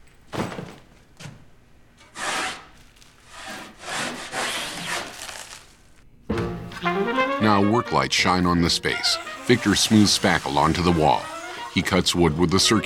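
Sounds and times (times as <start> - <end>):
metal-bladed scraper scraping paint off a wall: 2.0 - 5.6, 8.9 - 12.8
speech: 7.4 - 12.8.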